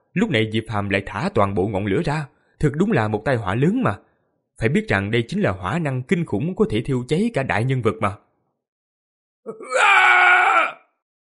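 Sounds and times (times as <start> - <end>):
speech: 0.2 - 8.2, 9.4 - 9.8
man screaming in agony: 9.5 - 11.0.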